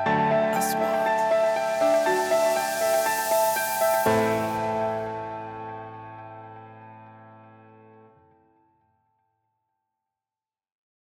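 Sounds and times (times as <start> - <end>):
corporate music: 0.2 - 6.0.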